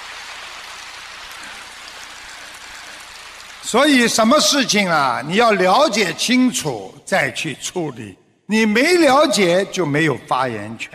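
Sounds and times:
audience clapping hands: 0.0 - 4.8
speech: 3.6 - 10.9.

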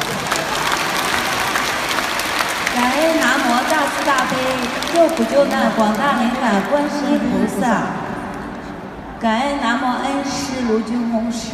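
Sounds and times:
audience applause at a Buddhist dharma talk: 0.0 - 7.5
speech: 4.0 - 8.0, 9.2 - 11.5.

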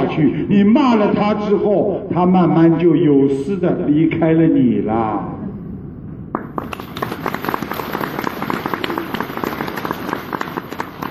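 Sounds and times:
speech: 0.2 - 5.4
audience applause: 6.4 - 11.0.

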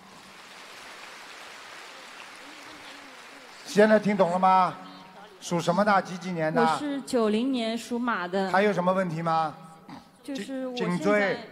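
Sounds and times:
audience applause: 0.0 - 6.3
speech: 3.7 - 4.8, 5.4 - 9.6, 10.2 - 11.5.

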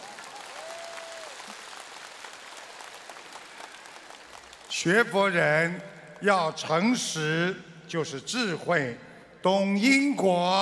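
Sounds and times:
applause: 0.0 - 6.3
speech: 4.8 - 10.6.

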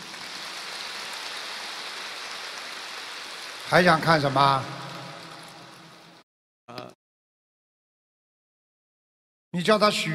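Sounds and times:
crowd applauding: 0.0 - 6.2
speech: 3.7 - 4.8, 9.5 - 10.1.

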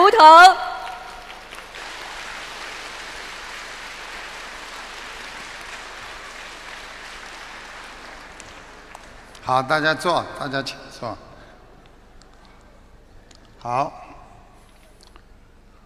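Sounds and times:
speech: 0.2 - 0.7, 9.5 - 11.3, 13.6 - 14.0
large audience applause: 0.8 - 9.4.

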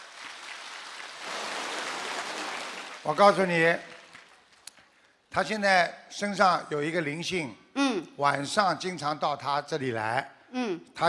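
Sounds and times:
group applause: 0.0 - 5.0
speech: 3.0 - 3.9, 5.3 - 11.0.

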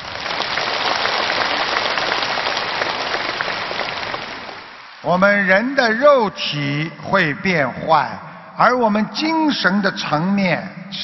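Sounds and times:
crowd clapping warmly: 0.0 - 5.2
speech: 5.0 - 11.0.

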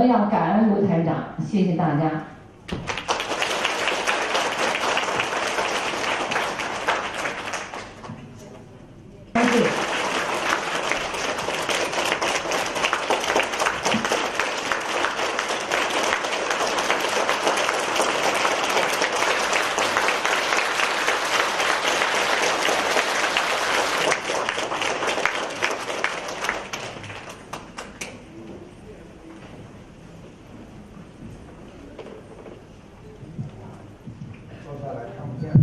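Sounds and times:
speech: 0.0 - 3.0
warm audience applause: 2.7 - 8.1, 9.4 - 28.2.

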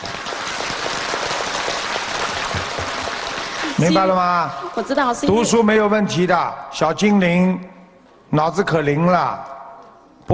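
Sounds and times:
audience applause: 0.0 - 5.2
speech: 3.8 - 7.7, 8.3 - 9.6.

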